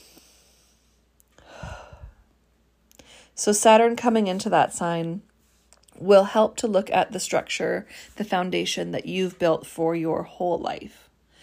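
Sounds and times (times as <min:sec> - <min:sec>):
person taking a deep breath: 0:00.0 - 0:02.3
speech: 0:03.4 - 0:05.3, 0:06.0 - 0:11.0.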